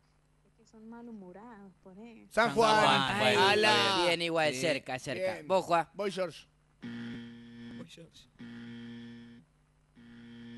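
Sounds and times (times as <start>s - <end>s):
speech: 0.7s - 7.1s, 7.9s - 8.8s
stuck buzzer bell ringing: 6.8s - 7.8s, 8.4s - 9.4s, 10.0s - 10.5s.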